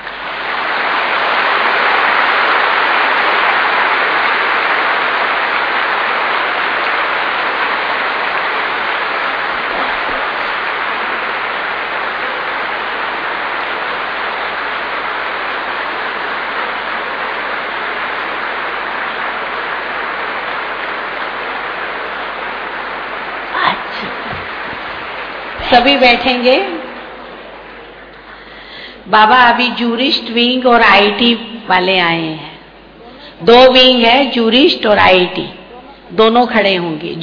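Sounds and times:
large audience clapping: 0.0 - 29.0
speech: 25.7 - 26.8, 29.1 - 32.5, 33.4 - 37.2.

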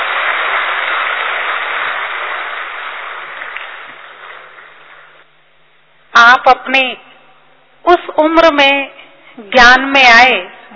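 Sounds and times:
audience clapping loudly in welcome: 0.0 - 5.2
speech: 6.4 - 7.1, 7.9 - 10.7.

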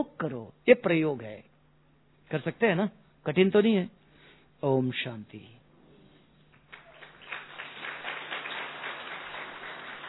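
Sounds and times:
speech: 0.0 - 1.5, 2.3 - 4.0, 4.6 - 5.6
audience clapping: 6.5 - 10.0.

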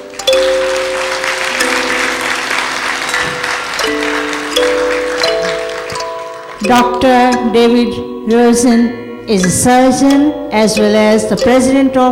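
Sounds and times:
audience applause welcoming a surgeon guest at a spiritual gathering: 0.0 - 6.7
sustained musical tones: 0.0 - 12.1
speech: 6.6 - 12.1.

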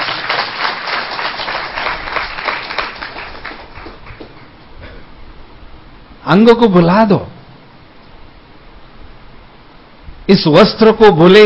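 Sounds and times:
audience applause: 0.0 - 4.6
speech: 6.3 - 7.3, 10.3 - 11.4.

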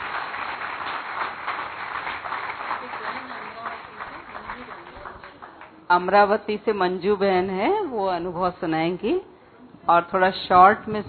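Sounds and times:
audience clapping at a gathering: 0.0 - 5.8
speech: 5.9 - 11.0.

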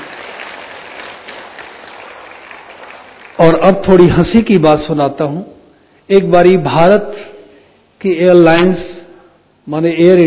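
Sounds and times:
audience applause: 0.0 - 3.7
speech: 3.4 - 5.5, 6.1 - 7.3, 8.0 - 8.9, 9.6 - 10.2.

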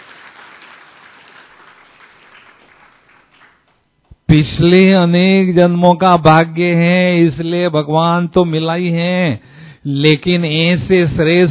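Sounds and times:
crowd applause: 0.0 - 3.8
speech: 4.3 - 11.4.

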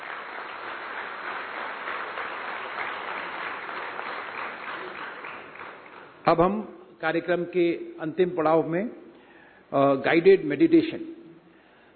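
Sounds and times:
audience applauding at a meditation programme at a Gyan Sarovar academy: 0.0 - 6.2
speech: 6.3 - 9.0, 9.7 - 11.1.

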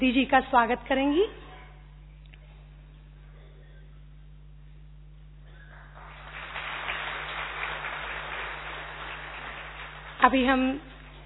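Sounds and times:
speech: 0.0 - 1.4, 10.2 - 10.9
audience applause welcoming a woman speaker at a gathering: 5.6 - 11.2.

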